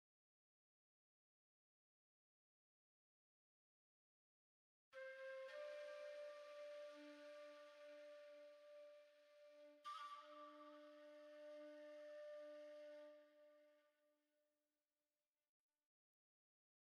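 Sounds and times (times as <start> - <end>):
flute: 5.0 - 14.0.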